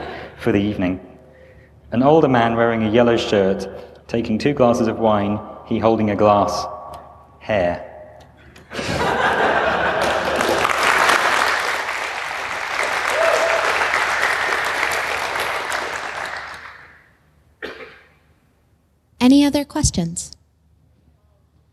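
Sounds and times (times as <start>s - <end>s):
speech: 0.4s - 1.1s, 1.9s - 6.7s, 7.5s - 7.9s, 19.3s - 20.4s
audience applause: 9.8s - 17.0s
cough or chuckle: 17.6s - 18.3s.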